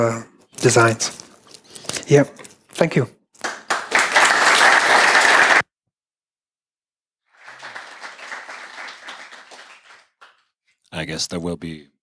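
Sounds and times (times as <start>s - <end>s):
speech: 0.0s - 1.2s, 2.1s - 3.2s, 11.1s - 12.0s
audience applause: 3.4s - 5.6s, 7.3s - 10.4s.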